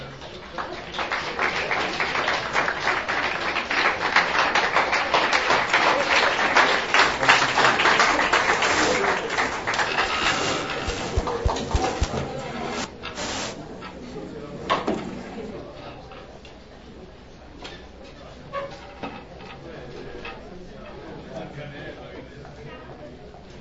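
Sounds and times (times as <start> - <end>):
audience applause welcoming a speaker: 0.3 - 13.5.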